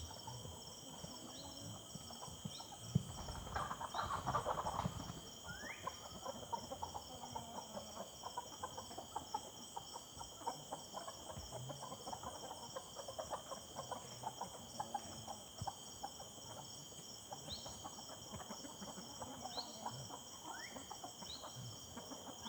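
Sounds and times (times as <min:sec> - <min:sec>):
chickens clucking: 0:00.0 - 0:22.4
constant high insect hum: 0:00.0 - 0:22.4.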